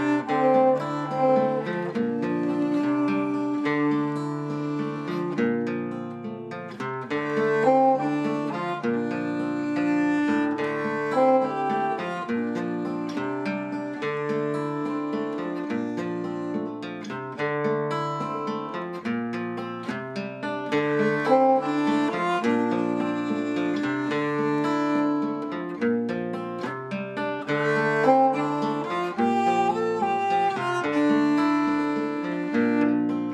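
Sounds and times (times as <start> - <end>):
violin playing an Eastern theme: 0.0 - 5.7, 7.0 - 16.6, 20.7 - 25.6, 27.4 - 33.3
guitar playing an Eastern theme: 0.0 - 33.3.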